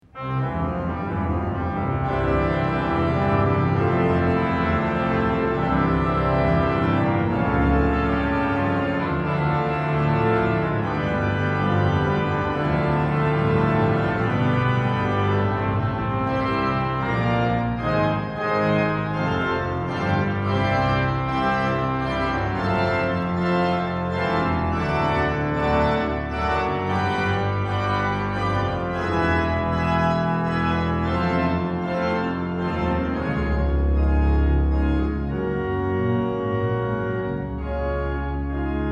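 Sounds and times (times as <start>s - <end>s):
organ music: 0.0s - 38.8s.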